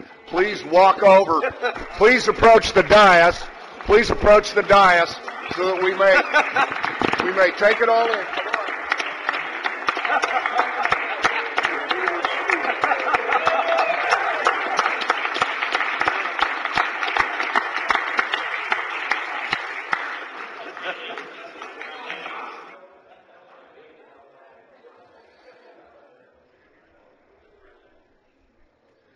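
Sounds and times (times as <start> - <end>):
crowd applauding: 0.0 - 22.8
speech: 0.3 - 8.4
scattered chuckles: 1.0 - 4.8, 5.5 - 7.5, 9.7 - 13.9, 20.4 - 24.1.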